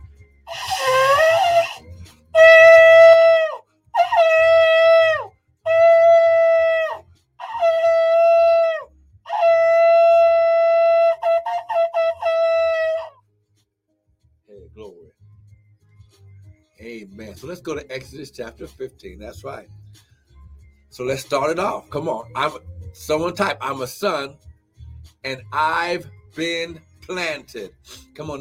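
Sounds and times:
shofar being blown: 0.5s - 13.2s
speech: 17.4s - 19.8s, 21.0s - 24.5s, 25.2s - 28.3s.

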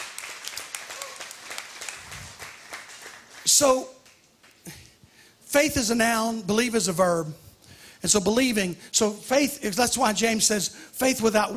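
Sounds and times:
audience clapping: 0.0s - 4.6s
speech: 3.4s - 4.0s, 5.5s - 7.4s, 8.0s - 11.5s.

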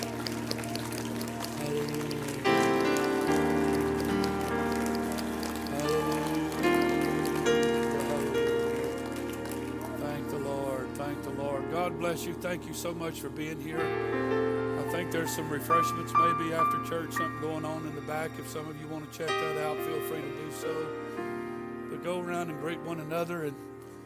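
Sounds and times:
audience clapping hands in praise: 0.0s - 11.6s, 14.9s - 20.8s
speech: 12.0s - 21.1s, 22.0s - 23.8s.

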